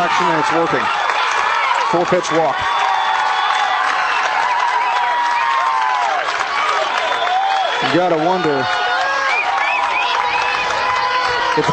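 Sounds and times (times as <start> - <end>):
speech: 0.0 - 1.0, 1.9 - 2.8, 7.8 - 8.8
stadium crowd cheering: 0.0 - 11.7.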